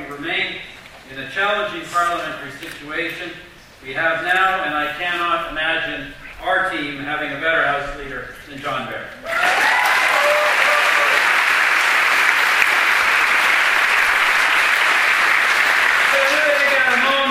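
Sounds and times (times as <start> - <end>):
speech: 0.2 - 9.7
audience applause: 9.3 - 17.2.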